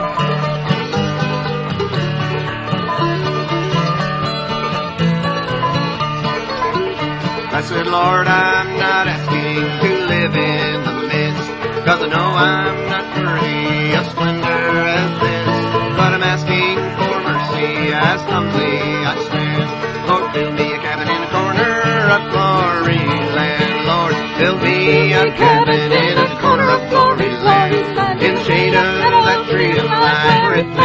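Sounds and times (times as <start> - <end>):
banjo: 0.0 - 30.8
guitar: 0.0 - 30.8
mandolin: 0.0 - 30.8
people singing: 7.5 - 30.8.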